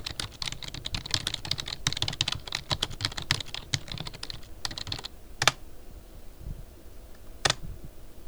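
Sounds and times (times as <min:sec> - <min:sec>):
Microsoft RT2300 keyboard: 0:00.0 - 0:05.6, 0:07.4 - 0:07.6.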